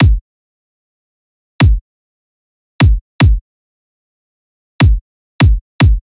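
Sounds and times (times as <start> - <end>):
dubstep kick drum loop: 0.0 - 0.2, 2.8 - 3.4.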